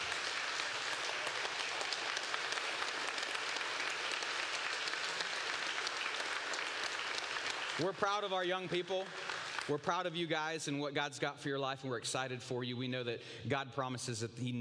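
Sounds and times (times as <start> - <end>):
church congregation standing to applaud its young people: 0.0 - 10.4
speech: 7.8 - 14.6.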